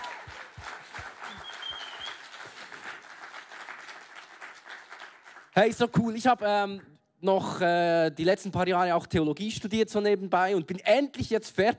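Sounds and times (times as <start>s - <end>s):
audience applause: 0.0s - 5.6s
speech: 5.6s - 11.7s.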